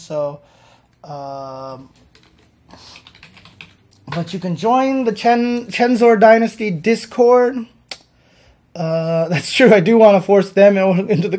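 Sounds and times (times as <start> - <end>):
speech: 0.0 - 3.0, 4.1 - 7.8, 8.8 - 11.3
typing on a computer keyboard: 1.8 - 4.4.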